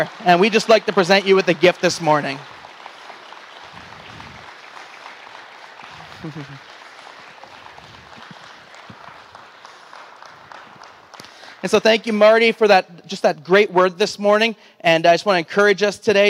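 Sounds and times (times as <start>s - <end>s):
speech: 0.0s - 2.6s, 6.2s - 6.7s, 11.6s - 16.2s
crowd clapping: 0.0s - 12.6s.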